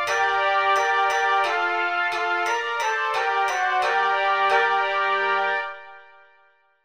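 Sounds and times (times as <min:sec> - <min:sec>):
fanfare: 0:00.1 - 0:06.3.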